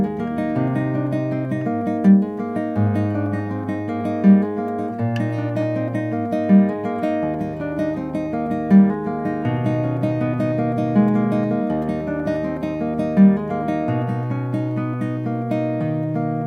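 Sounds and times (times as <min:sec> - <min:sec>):
guitar: 0:00.0 - 0:16.4.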